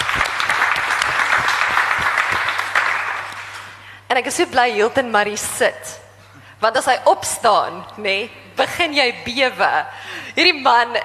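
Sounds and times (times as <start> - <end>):
audience clapping: 0.0 - 3.8
speech: 4.2 - 6.0, 6.6 - 11.0.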